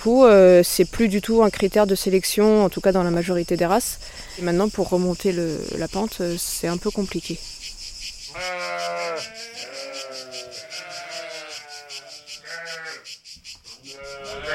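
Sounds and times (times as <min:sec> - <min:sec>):
speech: 0:00.0 - 0:07.6, 0:08.3 - 0:09.7
ewe bleating: 0:08.3 - 0:13.0, 0:13.9 - 0:14.5.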